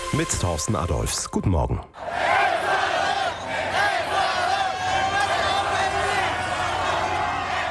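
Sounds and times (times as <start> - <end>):
speech: 0.1 - 2.1
Ecuador football fans cheering and celebrating a victory: 2.0 - 7.6.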